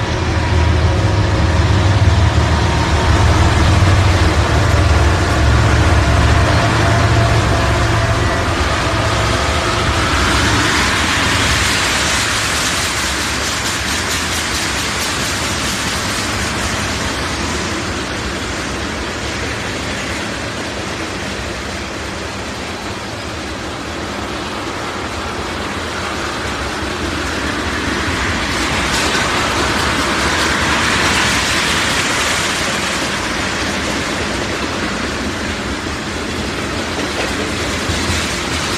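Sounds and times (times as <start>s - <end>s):
train running on its tracks: 0.0s - 38.7s.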